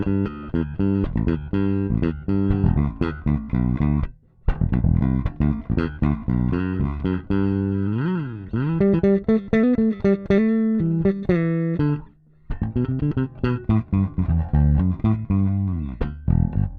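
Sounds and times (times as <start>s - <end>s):
bass jam: 0.0s - 16.7s.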